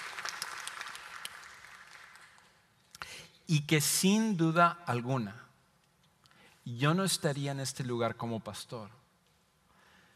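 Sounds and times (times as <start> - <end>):
congregation applauding the pastor's mother: 0.0 - 2.6
speech: 3.5 - 5.4, 6.7 - 9.0.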